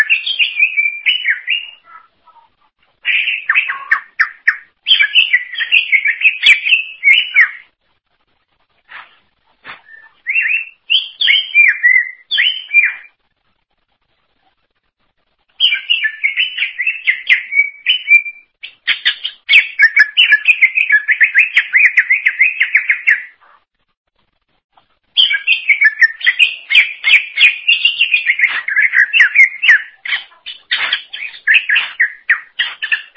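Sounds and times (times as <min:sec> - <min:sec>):
greater green leafbird singing: 0:00.0 - 0:02.5, 0:03.1 - 0:07.7, 0:09.8 - 0:13.2, 0:15.6 - 0:23.3, 0:25.2 - 0:33.1.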